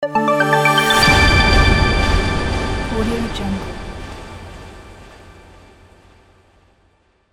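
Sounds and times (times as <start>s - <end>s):
minimal logo sound: 0.8s - 6.2s.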